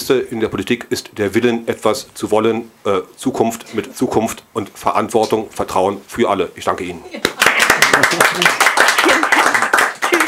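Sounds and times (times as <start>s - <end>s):
speech: 0.1s - 8.8s
applause: 7.2s - 10.2s.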